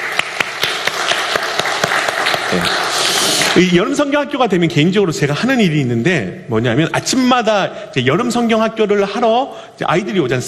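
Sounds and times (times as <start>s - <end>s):
crowd applause: 0.0s - 3.6s
speech: 3.6s - 10.4s.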